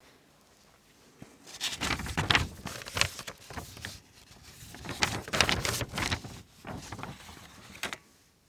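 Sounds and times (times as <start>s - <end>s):
paper rustling: 1.4s - 8.0s.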